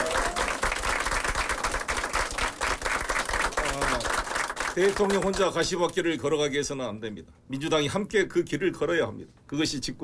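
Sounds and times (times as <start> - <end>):
audience applause: 0.0 - 5.5
speech: 4.8 - 10.0.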